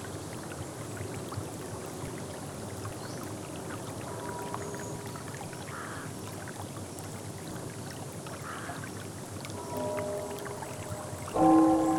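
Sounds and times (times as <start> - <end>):
rain: 0.0 - 11.9
bell ringing: 9.6 - 11.9.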